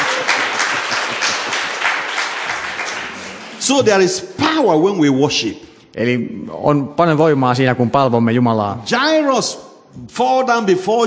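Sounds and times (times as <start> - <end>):
audience clapping hands: 0.0 - 3.9
speech: 3.7 - 11.0.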